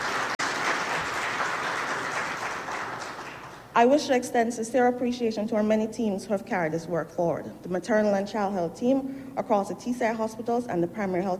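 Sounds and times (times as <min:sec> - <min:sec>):
audience applause: 0:00.0 - 0:03.7
speech: 0:03.8 - 0:11.3.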